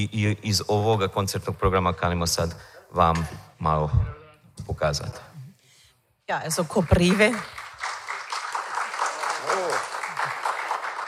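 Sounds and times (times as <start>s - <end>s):
speech: 0.0s - 5.3s, 6.3s - 7.9s
concert audience applause: 7.0s - 11.0s.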